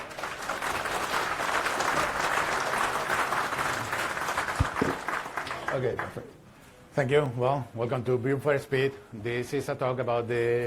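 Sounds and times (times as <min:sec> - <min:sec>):
audience applause: 0:00.0 - 0:06.2
speech: 0:05.8 - 0:06.4, 0:07.0 - 0:10.6.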